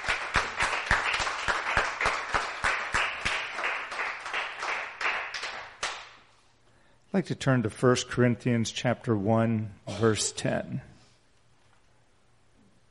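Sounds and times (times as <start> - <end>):
audience applause: 0.0 - 6.0
speech: 7.1 - 10.9.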